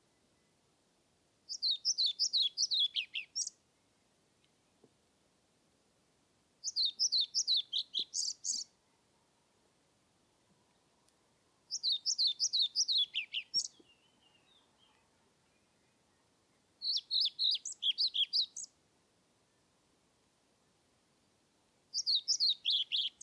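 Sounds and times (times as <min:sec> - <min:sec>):
European Pied Flycatcher twittering song: 0:01.5 - 0:03.5, 0:06.6 - 0:08.7, 0:11.7 - 0:14.7, 0:16.8 - 0:18.7, 0:22.0 - 0:23.2.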